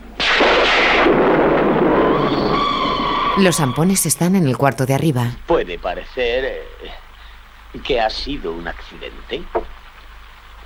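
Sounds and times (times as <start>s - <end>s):
thunderclap during storm: 0.2s - 3.8s
speech: 3.4s - 7.0s, 7.7s - 9.8s.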